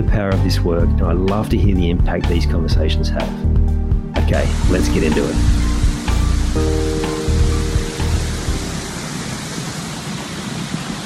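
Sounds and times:
speech: 0.0 - 3.6, 4.2 - 5.6, 6.6 - 7.2
loud waterfall roaring: 4.4 - 11.0.

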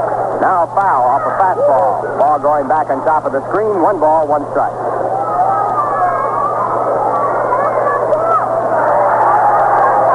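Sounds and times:
speech: 0.0 - 5.1
faint low electrical hum: 0.0 - 10.1
ballpark crowd applauding and cheering at a baseball game: 8.5 - 10.1.

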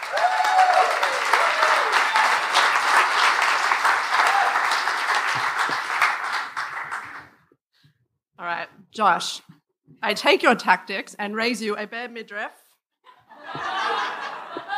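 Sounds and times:
audience applause for a comedian at a stand-up show: 0.0 - 7.4
speech: 9.0 - 12.6
laughter: 13.1 - 14.7.

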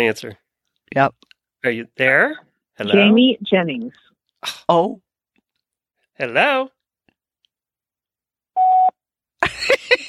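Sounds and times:
speech: 0.0 - 5.0, 6.2 - 6.8
voicemail beep: 8.6 - 9.0.

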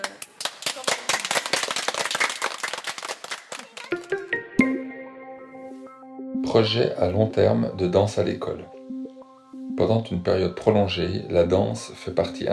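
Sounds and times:
children clapping applause: 0.0 - 4.4
sustained musical tones: 4.0 - 12.5
speech: 6.5 - 8.8, 9.8 - 12.5.

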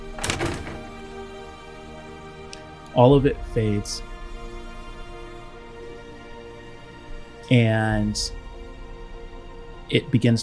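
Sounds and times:
door closing: 0.0 - 1.7
speech: 3.0 - 4.1, 7.5 - 8.4, 9.9 - 10.4.

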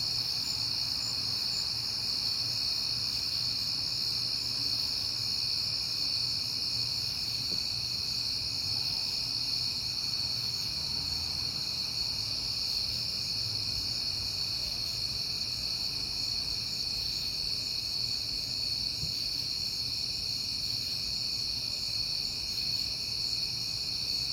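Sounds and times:
cricket chorus trilling: 0.0 - 24.3.

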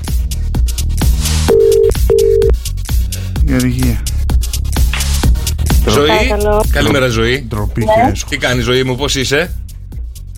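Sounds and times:
loud beat-driven music: 0.2 - 8.7
phone ringing tone as a Greek radio morning show calls a listener: 1.5 - 2.5
speech: 3.5 - 4.1, 6.0 - 9.6.

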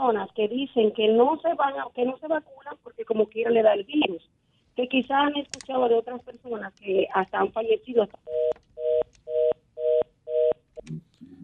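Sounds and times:
speech: 0.0 - 11.3
click: 5.5 - 6.9
phone line tone beeps after dropped call: 8.3 - 10.6.

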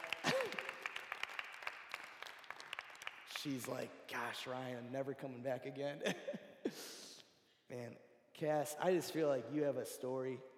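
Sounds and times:
round of applause: 0.0 - 3.9
speech: 3.4 - 6.9, 7.7 - 10.5.

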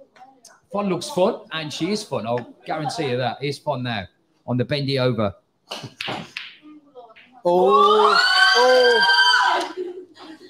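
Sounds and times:
speech: 0.7 - 6.4, 7.4 - 9.6
high-pitched scream: 7.5 - 9.8.

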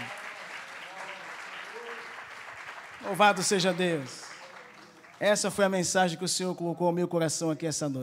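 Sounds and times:
crowd clapping: 0.0 - 6.0
speech: 3.0 - 4.3, 5.2 - 8.0.

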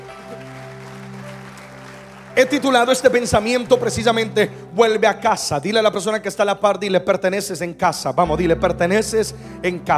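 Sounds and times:
audience applause: 0.0 - 4.5
speech: 2.4 - 9.9.

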